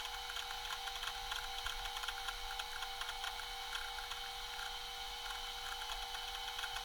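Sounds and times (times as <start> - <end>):
computer: 0.0 - 6.8.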